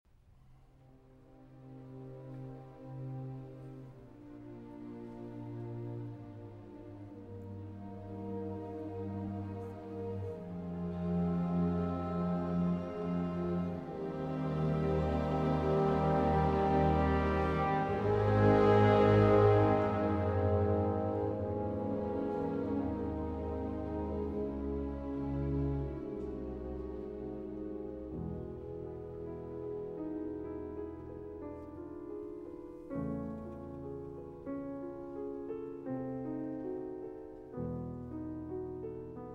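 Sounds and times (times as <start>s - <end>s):
piano concerto in C minor, slow sustained movement: 0.4s - 39.3s.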